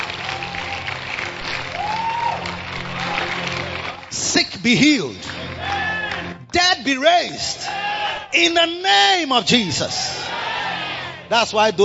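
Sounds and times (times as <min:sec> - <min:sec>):
audience clapping: 0:00.0 - 0:07.3
speech: 0:04.4 - 0:05.3, 0:06.8 - 0:10.2, 0:11.3 - 0:11.8.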